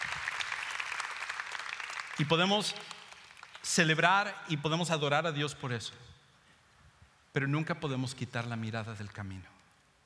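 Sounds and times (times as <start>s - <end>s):
audience applause: 0.0s - 3.7s
speech: 2.2s - 3.0s, 3.6s - 6.1s, 7.4s - 9.5s.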